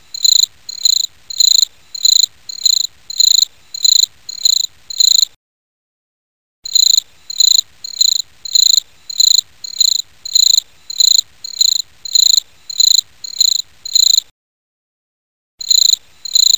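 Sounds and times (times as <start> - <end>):
cricket chirping at midnight: 0.1 - 5.3, 6.7 - 14.3, 15.6 - 16.5.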